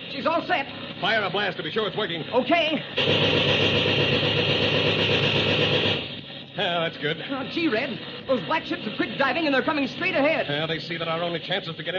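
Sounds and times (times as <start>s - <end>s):
airplane engine sound effect roaring with the throttle wide open: 0.0s - 11.9s
speech: 0.2s - 5.8s, 6.6s - 11.9s.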